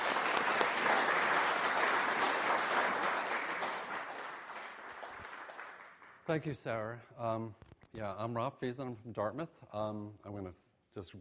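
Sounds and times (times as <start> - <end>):
audience applause welcoming a speaker at a talk on airships for science: 0.0 - 6.2
speech: 6.3 - 11.1.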